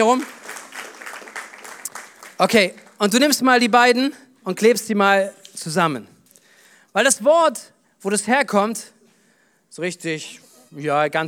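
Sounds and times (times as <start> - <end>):
speech: 0.0 - 0.4, 2.4 - 6.1, 6.9 - 9.0, 9.7 - 11.2
audience applause: 0.0 - 3.0.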